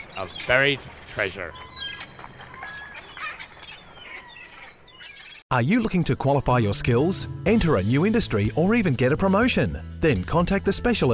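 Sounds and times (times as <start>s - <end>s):
speech: 0.2s - 1.7s, 5.5s - 11.1s
parrot squawking: 1.5s - 5.4s.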